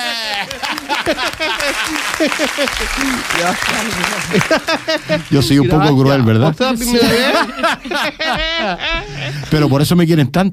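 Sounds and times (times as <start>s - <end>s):
applause: 0.0s - 5.9s
laughter: 0.0s - 9.9s
speech: 0.2s - 10.5s.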